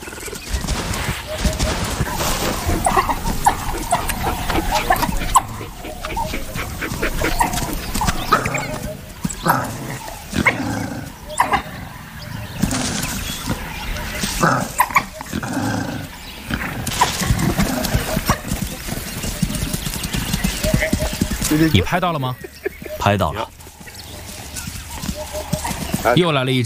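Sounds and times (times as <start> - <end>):
African wild dog calling pack members: 1.0 - 26.2
laughter: 1.4 - 8.9, 20.9 - 23.6
speech: 21.6 - 23.6, 26.0 - 26.6.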